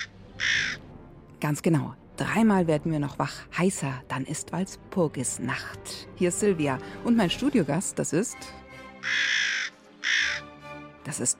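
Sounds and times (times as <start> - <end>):
raven cawing: 0.0 - 0.9, 9.0 - 10.6
speech: 1.4 - 9.4, 11.1 - 11.3.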